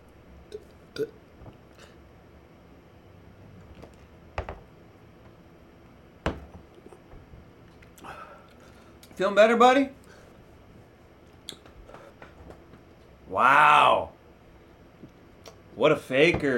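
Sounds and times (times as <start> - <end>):
speech: 0.5 - 1.2, 9.2 - 10.0, 13.4 - 13.6, 15.8 - 16.5
person gulping down a glass of milk: 0.5 - 2.0.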